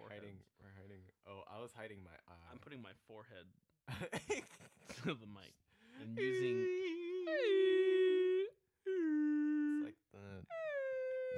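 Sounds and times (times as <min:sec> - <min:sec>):
speech: 0:00.4 - 0:07.8
laughter: 0:03.9 - 0:05.2
person imitating a beluga whale call: 0:06.1 - 0:11.3.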